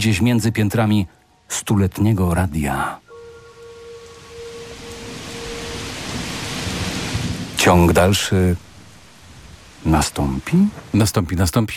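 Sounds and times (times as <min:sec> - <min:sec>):
speech: 0:00.0 - 0:03.0, 0:07.7 - 0:08.7, 0:09.8 - 0:11.7
faint sustained tone: 0:03.0 - 0:09.0
dense rain: 0:03.0 - 0:11.7
thunder rumbling: 0:03.1 - 0:11.0.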